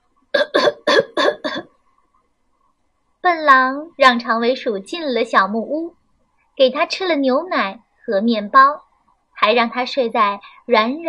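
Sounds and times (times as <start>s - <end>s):
voice imitating coughing: 0.4s - 1.6s
speech: 3.3s - 6.0s, 6.6s - 8.8s, 9.4s - 11.0s.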